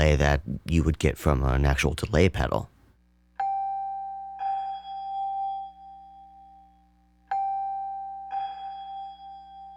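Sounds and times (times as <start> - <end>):
speech: 0.0 - 2.7
Mellotron celeste bell-like chimes in lo-fi room reverb: 3.4 - 6.6, 7.3 - 9.7.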